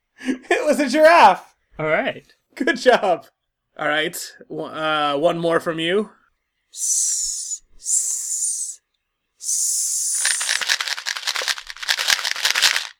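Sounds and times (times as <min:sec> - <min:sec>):
speech: 0:00.7 - 0:08.2
person imitating a rattlesnake rattle: 0:06.8 - 0:08.8, 0:09.4 - 0:12.9.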